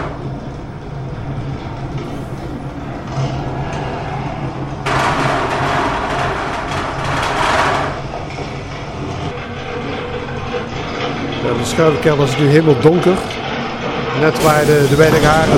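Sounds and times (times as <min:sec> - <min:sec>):
simulated tornado wind in storm shelter: 0:00.2 - 0:11.4
speech: 0:11.8 - 0:13.4, 0:14.2 - 0:15.5.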